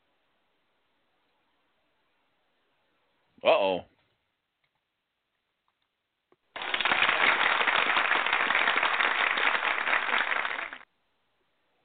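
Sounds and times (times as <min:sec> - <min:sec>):
speech: 0:03.4 - 0:03.9
applause: 0:06.5 - 0:10.9.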